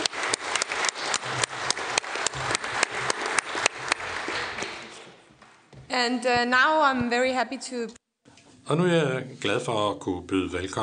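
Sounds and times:
audience applause for a speaker at a debate on biomass: 0:00.0 - 0:05.2
speech: 0:06.0 - 0:08.0, 0:08.7 - 0:10.8.

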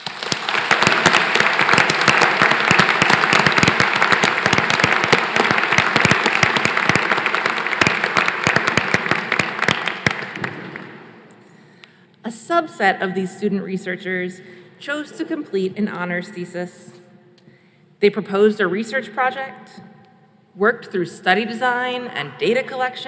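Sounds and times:
crowd applauding: 0:00.0 - 0:11.0
speech: 0:12.5 - 0:16.8, 0:18.0 - 0:19.8, 0:20.6 - 0:23.0.

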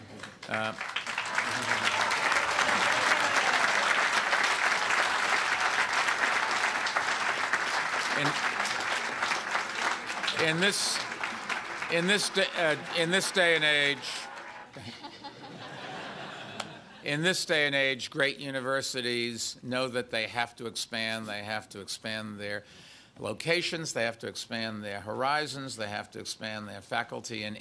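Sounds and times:
large crowd applauding and cheering: 0:00.0 - 0:15.0
speech: 0:00.5 - 0:00.9, 0:10.4 - 0:11.1, 0:11.9 - 0:15.0, 0:17.1 - 0:27.5
laughter: 0:01.3 - 0:04.0, 0:10.1 - 0:17.1.

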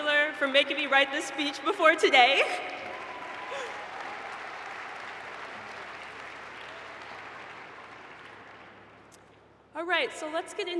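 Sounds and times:
speech: 0:00.4 - 0:02.8, 0:09.8 - 0:10.7
audience applause: 0:02.4 - 0:09.2.

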